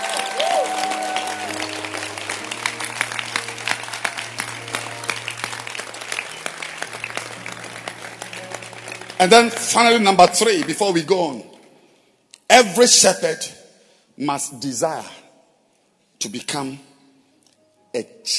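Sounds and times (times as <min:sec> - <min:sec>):
church conference audience clapping: 0:00.0 - 0:11.4
speech: 0:09.2 - 0:11.5, 0:12.5 - 0:13.6, 0:14.2 - 0:15.2, 0:16.2 - 0:16.9, 0:17.9 - 0:18.3.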